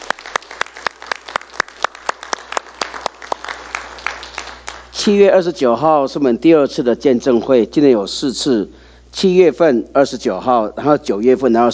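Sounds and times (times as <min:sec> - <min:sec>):
audience applauding: 0:00.0 - 0:04.9
speech: 0:05.0 - 0:11.7.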